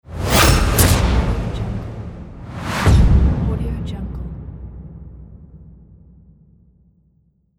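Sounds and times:
cinematic transition: 0.1s - 6.3s.

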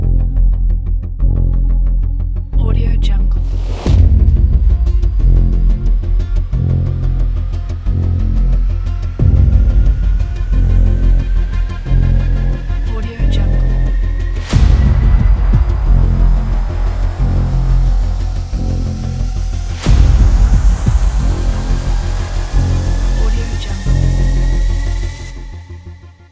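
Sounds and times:
dark suspenseful epic blockbuster music: 0.0s - 26.3s.

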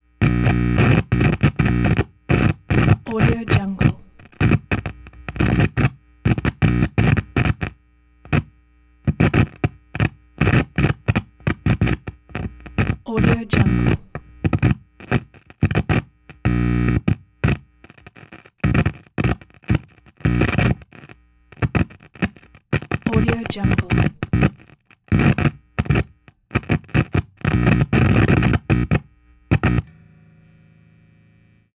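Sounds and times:
guitar amp static from plug: 0.1s - 31.7s.

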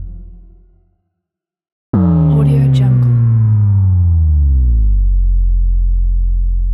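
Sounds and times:
textured slow motion impacts: 2.0s - 6.6s.

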